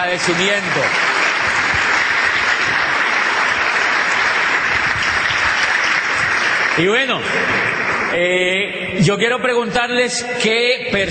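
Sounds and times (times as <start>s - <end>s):
speech: 0.0s - 1.1s, 6.8s - 11.1s
audience applause: 0.0s - 8.2s.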